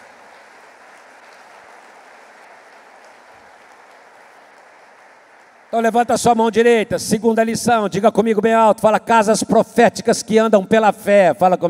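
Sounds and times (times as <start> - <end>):
audience applause: 0.0 - 6.2
speech: 5.7 - 11.6.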